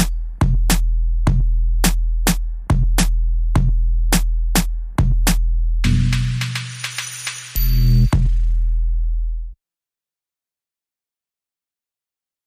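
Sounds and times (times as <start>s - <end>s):
music beat: 0.0s - 9.3s.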